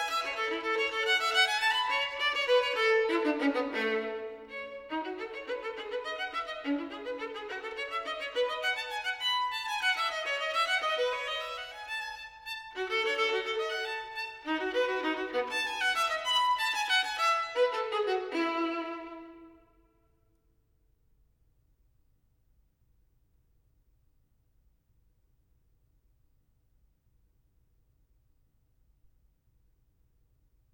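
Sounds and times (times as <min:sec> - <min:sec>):
solo violin gigue: 0:00.0 - 0:19.8.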